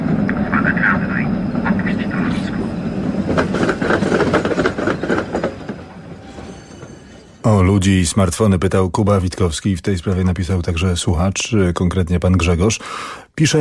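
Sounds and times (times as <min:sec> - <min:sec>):
approaching tram: 0:00.0 - 0:08.1
loudspeaker voice warning of an approaching tram: 0:00.3 - 0:02.6
speech: 0:07.7 - 0:13.5.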